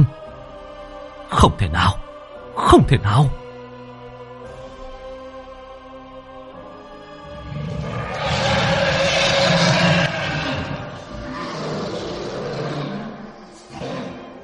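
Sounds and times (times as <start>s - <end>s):
speech: 1.4s - 2.0s, 2.6s - 3.4s
monstrous spirit beasts roaring while fighting: 7.3s - 14.4s.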